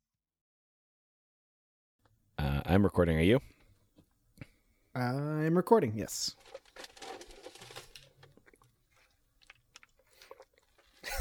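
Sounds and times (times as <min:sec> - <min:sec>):
speech: 0:02.6 - 0:03.6, 0:05.0 - 0:06.9
person drinking water from a jug: 0:06.4 - 0:11.1.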